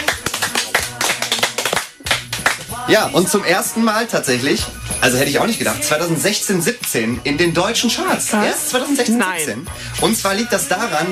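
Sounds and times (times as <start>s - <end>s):
crowd clapping: 0.0s - 2.8s
speech: 2.9s - 11.1s.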